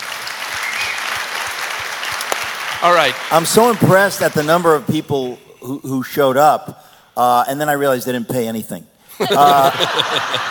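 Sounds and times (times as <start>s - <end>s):
audience applause from a large crowd at a packed gathering: 0.0s - 4.7s
speech: 2.8s - 10.5s
laughter: 9.2s - 10.5s.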